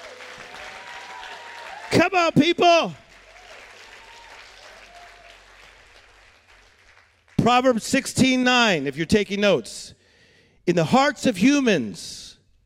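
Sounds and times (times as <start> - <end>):
audience cheering: 0.0 - 6.4
audience clapping: 0.0 - 7.8
speech: 1.9 - 3.0, 7.4 - 10.0, 10.6 - 12.3.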